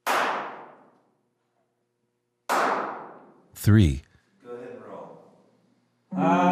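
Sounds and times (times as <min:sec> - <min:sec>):
hand claps testing room acoustics: 0:00.0 - 0:01.0, 0:02.5 - 0:03.3
speech: 0:03.6 - 0:04.1, 0:06.2 - 0:06.4.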